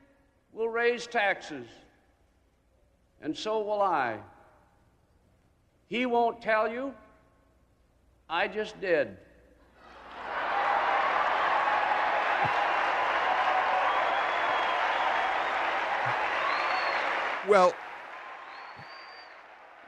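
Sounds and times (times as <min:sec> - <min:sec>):
speech: 0:00.8 - 0:01.8, 0:03.2 - 0:04.3, 0:05.9 - 0:07.0, 0:08.3 - 0:09.2, 0:17.5 - 0:17.8
cheering on the political convention floor: 0:09.8 - 0:19.8
applause at political convention: 0:10.1 - 0:19.8.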